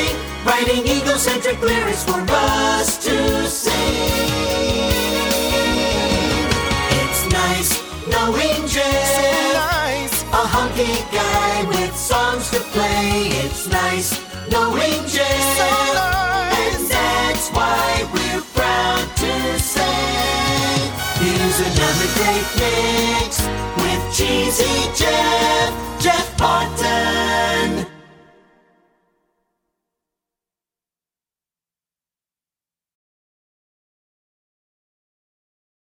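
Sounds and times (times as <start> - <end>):
song: 0.0 - 28.7.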